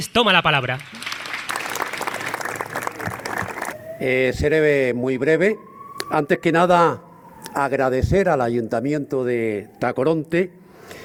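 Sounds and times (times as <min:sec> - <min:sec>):
speech: 0:00.0 - 0:01.0, 0:04.0 - 0:11.0
audience applause: 0:00.8 - 0:03.8.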